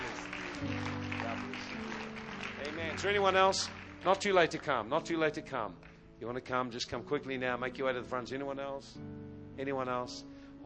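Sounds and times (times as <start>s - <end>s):
crowd clapping: 0.0s - 6.0s
sustained low musical tones: 0.0s - 10.6s
speech: 3.0s - 10.3s.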